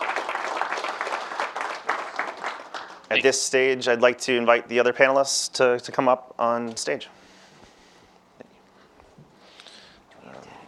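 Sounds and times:
audience applause: 0.0 - 3.2
speech: 3.1 - 7.2.

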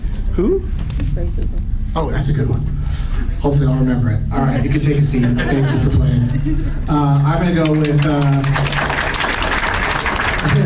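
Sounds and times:
speech: 0.4 - 8.9
laughter: 5.0 - 7.2
polite round of applause from a small group: 7.6 - 10.6.

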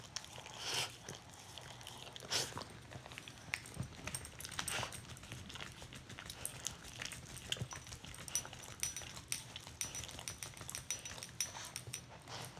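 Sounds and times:
dogs licking and grooming each other: 0.0 - 12.5.

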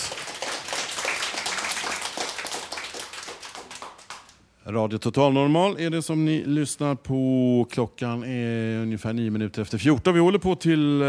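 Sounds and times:
applause: 0.0 - 4.4
speech: 4.7 - 11.0.

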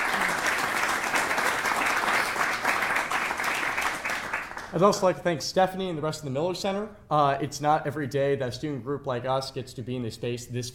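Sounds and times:
audience applause: 0.0 - 4.8
speech: 4.7 - 10.7.

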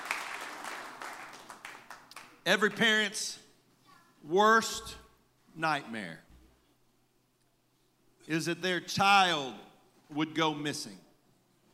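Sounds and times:
audience hand clapping: 0.0 - 2.7
speech: 2.4 - 3.4, 4.2 - 5.0, 5.6 - 6.2, 8.3 - 11.0.

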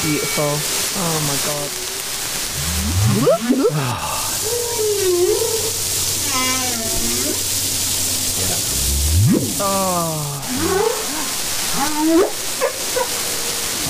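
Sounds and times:
speech: 0.0 - 1.9, 2.8 - 5.6, 9.3 - 11.0, 11.8 - 12.4
humpback whale song recording: 2.5 - 12.4.

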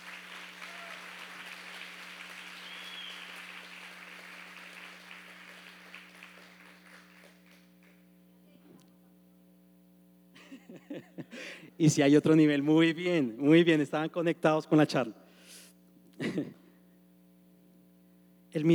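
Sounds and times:
strong dense audience applause: 0.0 - 8.0
speech: 10.7 - 15.2, 18.6 - 18.7.

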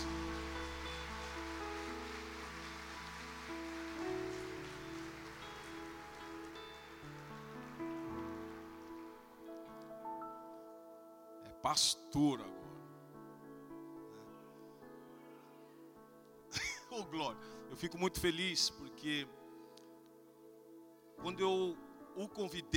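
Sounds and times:
audience applause: 0.0 - 9.4
speech: 11.6 - 12.6, 17.0 - 19.4, 21.2 - 22.7.

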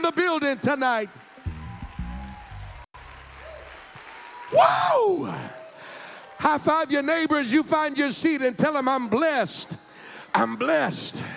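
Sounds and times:
speech: 0.1 - 1.2, 4.5 - 5.6, 6.4 - 11.3
audience hand clapping: 0.2 - 6.0.

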